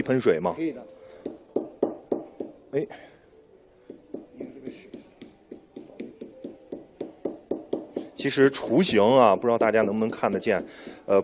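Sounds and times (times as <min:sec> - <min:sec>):
speech: 0:00.0 - 0:01.0, 0:02.7 - 0:03.1, 0:08.2 - 0:11.2
small hammer tapping on paper: 0:01.2 - 0:02.6, 0:03.9 - 0:08.2, 0:09.5 - 0:11.1.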